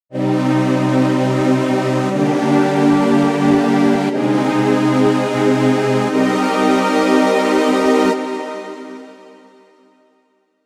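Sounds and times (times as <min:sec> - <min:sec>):
mellow deep strings: 0:00.2 - 0:08.1.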